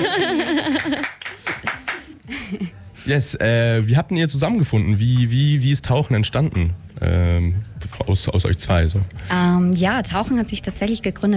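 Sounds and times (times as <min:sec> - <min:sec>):
laughter: 0:00.0 - 0:02.8
audience hand claps: 0:00.5 - 0:02.2
speech: 0:03.1 - 0:11.3.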